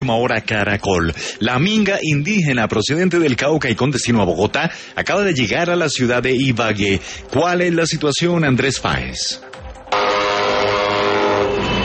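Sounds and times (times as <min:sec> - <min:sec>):
speech: 0:00.1 - 0:09.6
engine drone of buses arriving in Ibagué, Colombia: 0:10.0 - 0:11.8.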